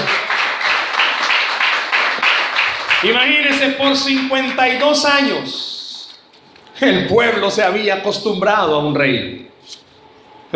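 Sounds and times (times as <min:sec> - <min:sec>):
audience applause: 0:00.0 - 0:04.4
speech: 0:03.0 - 0:05.7, 0:06.8 - 0:09.8.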